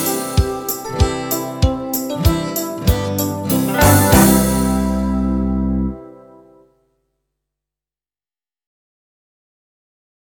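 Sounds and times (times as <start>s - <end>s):
recorder playing a folk tune to play along with: 0.0s - 6.6s.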